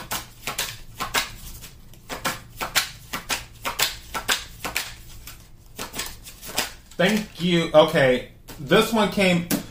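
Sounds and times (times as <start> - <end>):
playing cards being shuffled and drawn from a deck: 0.0 - 7.6
speech: 7.0 - 9.6.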